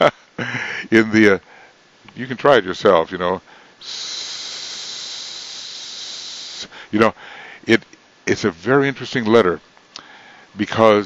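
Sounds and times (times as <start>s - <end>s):
speech: 0.0s - 1.5s, 2.2s - 4.3s, 6.9s - 9.7s, 10.6s - 11.0s
person hissing like a snake: 3.8s - 6.9s.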